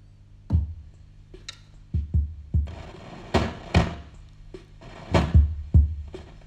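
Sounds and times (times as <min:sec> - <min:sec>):
rhythm box playing basic drum pattern: 0:00.5 - 0:06.4.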